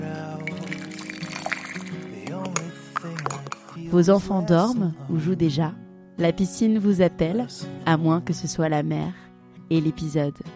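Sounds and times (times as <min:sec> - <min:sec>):
coffee being poured: 0:00.0 - 0:03.8
soft music: 0:00.0 - 0:10.5
speech: 0:03.9 - 0:10.5.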